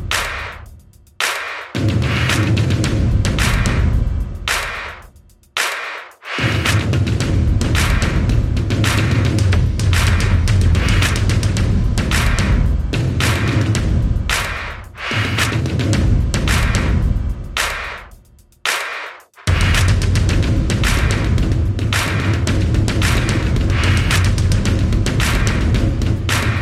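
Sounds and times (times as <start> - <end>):
drums: 0.0 - 26.6.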